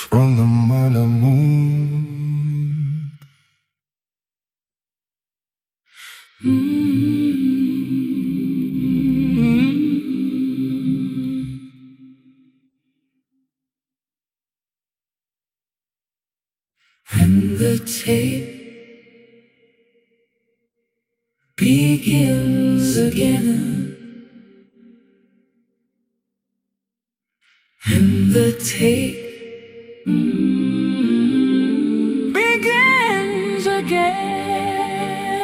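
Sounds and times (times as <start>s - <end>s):
vocal stem: 0.0s - 3.8s, 5.9s - 13.0s, 16.8s - 20.8s, 21.4s - 25.7s, 27.4s - 35.4s.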